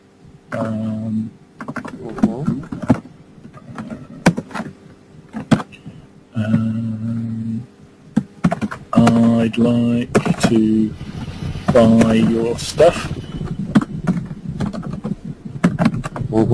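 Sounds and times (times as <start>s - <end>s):
low steady hum: 0.0s - 16.5s
speech: 0.5s - 2.7s, 9.6s - 11.1s, 11.7s - 13.2s
typing on a computer keyboard filling in a web form: 1.6s - 2.0s, 8.4s - 9.2s, 13.7s - 16.3s.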